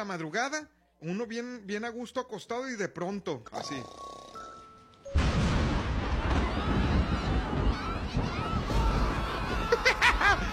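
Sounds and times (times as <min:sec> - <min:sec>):
speech: 0:00.0 - 0:04.2
thunder at night in Monterrey: 0:05.2 - 0:10.5
laughter: 0:09.5 - 0:10.5.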